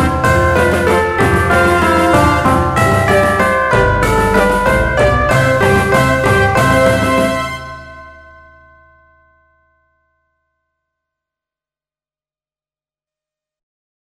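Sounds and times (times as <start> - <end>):
fanfare: 0.0 - 8.4.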